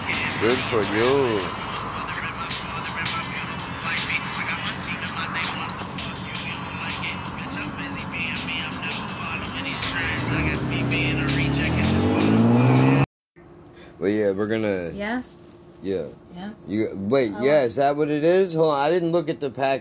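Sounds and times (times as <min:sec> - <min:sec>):
car engine roaring as the gas pedal is pressed: 0:00.0 - 0:13.1
speech: 0:00.4 - 0:01.6, 0:14.0 - 0:19.7.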